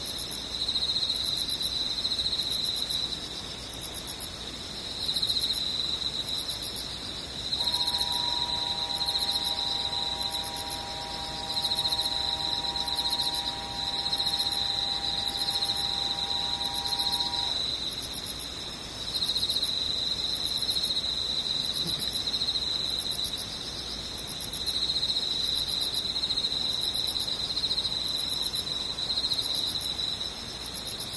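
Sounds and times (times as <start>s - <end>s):
insects trilling: 0.0s - 31.1s
mid-pitched hum: 7.6s - 17.6s.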